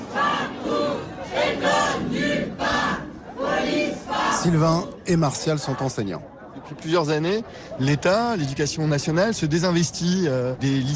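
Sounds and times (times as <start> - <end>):
striking staff shouting together behind doors: 0.0 - 6.7
speech: 4.4 - 10.9.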